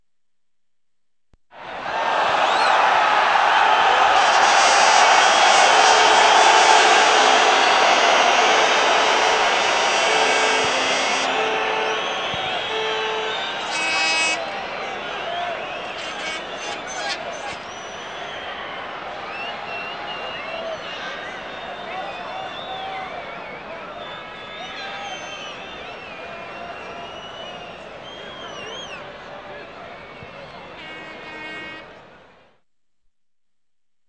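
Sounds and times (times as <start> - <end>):
people cheering: 1.5 - 32.1.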